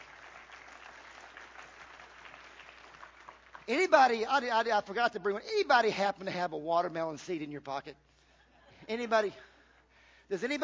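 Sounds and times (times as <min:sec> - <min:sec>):
audience clapping: 0:00.0 - 0:04.8
speech: 0:03.7 - 0:08.1, 0:08.9 - 0:09.5, 0:10.3 - 0:10.6.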